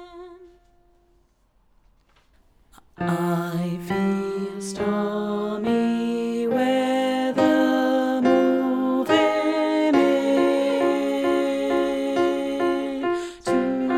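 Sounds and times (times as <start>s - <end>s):
group singalong: 3.0s - 13.9s.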